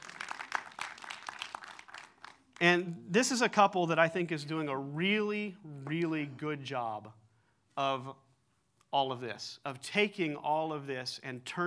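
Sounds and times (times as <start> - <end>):
audience clapping: 0.0 - 2.8
speech: 2.6 - 7.2, 7.8 - 8.2, 8.9 - 11.6.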